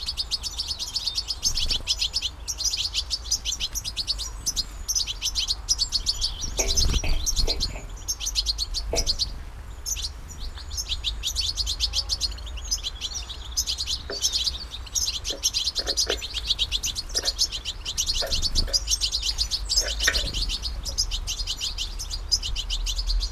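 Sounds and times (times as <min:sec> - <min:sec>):
birds at an amplified bird feeder in Burbage Valley UK: 0:00.0 - 0:23.3.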